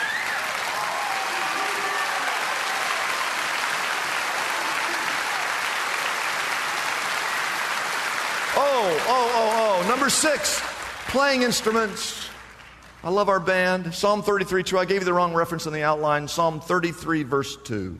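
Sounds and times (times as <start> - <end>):
audience applause: 0.0 - 13.1
speech: 9.0 - 12.3, 13.0 - 17.9.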